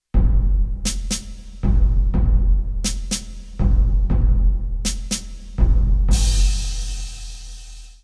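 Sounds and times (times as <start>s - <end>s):
duel background music: 0.1s - 8.0s.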